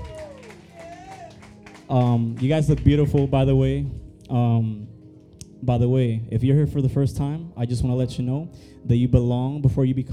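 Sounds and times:
audience clapping: 0:00.0 - 0:03.6
speech: 0:01.9 - 0:05.0, 0:05.6 - 0:10.1.

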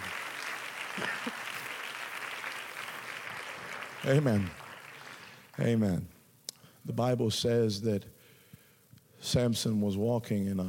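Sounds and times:
audience clapping hands: 0:00.0 - 0:05.8
speech: 0:04.1 - 0:04.6, 0:05.6 - 0:06.1, 0:06.8 - 0:08.1, 0:09.2 - 0:10.6.

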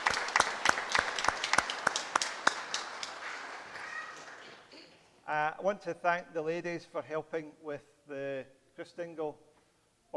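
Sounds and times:
audience applauding: 0:00.0 - 0:05.1
speech: 0:05.3 - 0:09.5.

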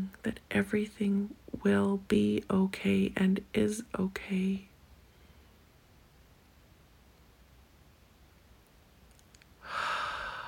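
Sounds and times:
speech: 0:00.0 - 0:04.7
deep breath in during a guided breathing exercise: 0:09.6 - 0:10.4.

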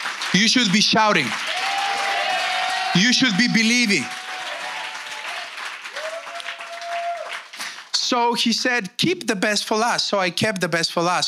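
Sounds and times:
church congregation clapping and applauding: 0:00.0 - 0:08.0
speech: 0:00.3 - 0:01.6, 0:02.9 - 0:04.2, 0:08.1 - 0:11.2.

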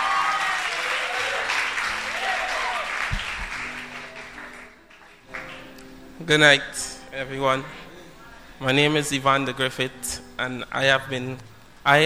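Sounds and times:
church congregation applause welcoming a speaker: 0:00.0 - 0:06.0
speech: 0:06.3 - 0:07.8, 0:08.6 - 0:12.0.

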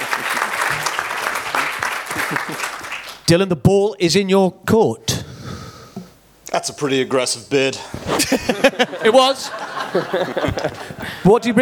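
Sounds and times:
audience applause: 0:00.0 - 0:03.2
laughter: 0:02.0 - 0:02.9, 0:07.9 - 0:11.6
speech: 0:03.3 - 0:05.2, 0:06.6 - 0:11.6.

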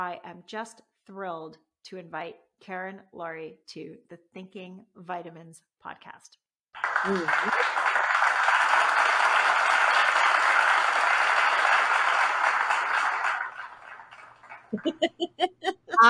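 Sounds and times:
speech: 0:00.0 - 0:07.8, 0:14.7 - 0:16.0
laughter: 0:06.8 - 0:08.4, 0:14.5 - 0:16.0
audience applause: 0:06.8 - 0:15.3
short rhythmic voiced bursts: 0:14.8 - 0:16.0.

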